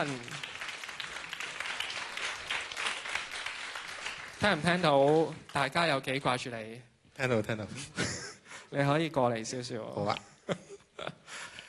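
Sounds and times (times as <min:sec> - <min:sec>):
speech: 0:00.0 - 0:00.4, 0:04.4 - 0:10.6
audience applause welcoming a university music student on a stage in Hong Kong: 0:00.0 - 0:05.6.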